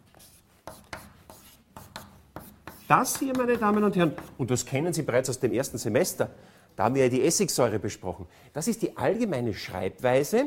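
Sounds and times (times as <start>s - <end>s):
chalk scratching on a blackboard during a chemistry lecture: 0.0s - 4.4s
speech: 2.9s - 10.4s.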